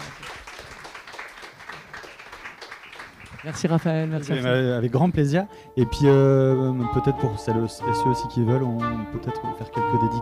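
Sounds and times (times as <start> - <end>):
audience applauding an author at a book talk: 0.0 - 5.0
speech: 3.4 - 10.1.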